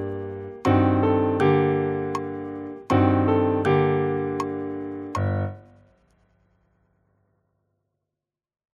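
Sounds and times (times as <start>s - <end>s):
sonata accompaniment: 0.0s - 5.8s.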